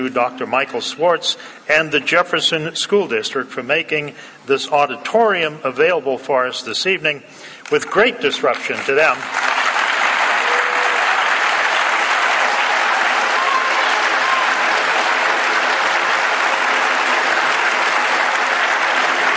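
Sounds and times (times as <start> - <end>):
speech: 0.0 - 9.5
audience applause: 8.6 - 19.3.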